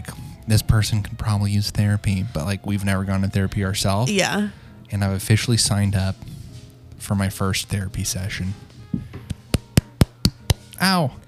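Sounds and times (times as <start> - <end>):
speech: 0.5 - 6.4, 7.0 - 8.7, 10.8 - 11.2
hands clapping into the microphone: 9.2 - 10.8.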